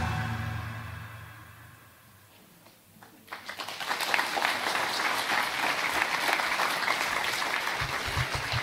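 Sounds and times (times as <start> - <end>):
audience applause after video: 3.0 - 8.6.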